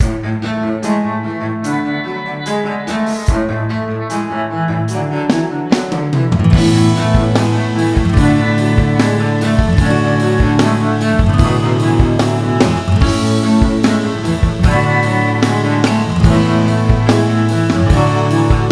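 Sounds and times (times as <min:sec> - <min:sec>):
cello: 0:00.0 - 0:18.7.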